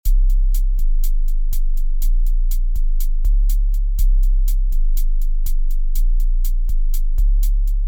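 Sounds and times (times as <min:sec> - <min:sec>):
sub bass: 0:00.0 - 0:07.8.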